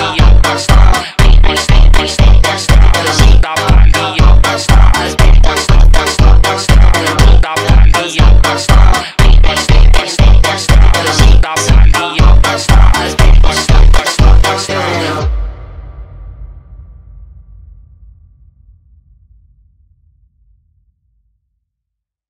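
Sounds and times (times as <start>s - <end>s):
funk phonk music: 0.0s - 15.5s.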